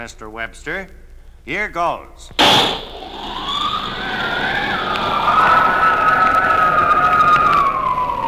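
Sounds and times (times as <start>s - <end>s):
speech: 0.0s - 3.5s
wind tunnel rush of blowing air: 2.4s - 8.2s
wind tunnel whining tone: 2.4s - 8.2s.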